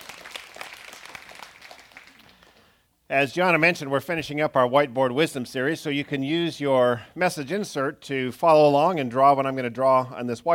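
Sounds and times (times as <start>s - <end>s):
audience clapping: 0.0s - 2.8s
speech: 3.1s - 10.5s.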